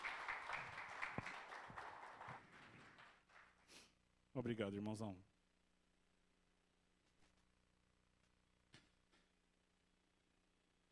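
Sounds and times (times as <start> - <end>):
audience applause: 0.0 - 3.6
speech: 4.4 - 5.3.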